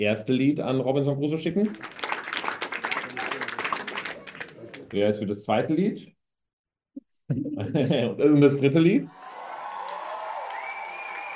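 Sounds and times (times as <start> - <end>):
speech: 0.0 - 2.0, 4.9 - 6.2, 7.3 - 9.2
audience clapping to vote for a song: 1.6 - 5.0, 9.1 - 11.3.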